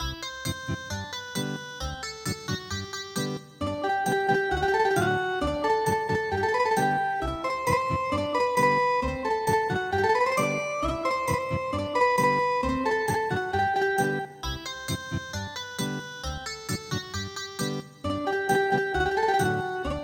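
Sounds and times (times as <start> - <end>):
ethnic guitar traditional MIDI music: 0.3 - 20.0.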